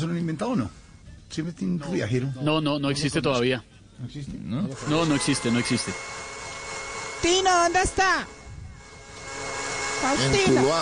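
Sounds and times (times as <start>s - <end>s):
speech: 0.0s - 6.3s, 7.2s - 8.4s, 10.0s - 10.7s
electric blender running: 4.7s - 10.7s.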